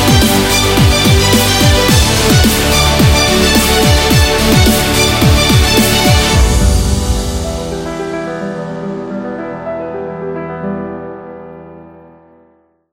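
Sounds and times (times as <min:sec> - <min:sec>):
epic action music: 0:00.0 - 0:09.2.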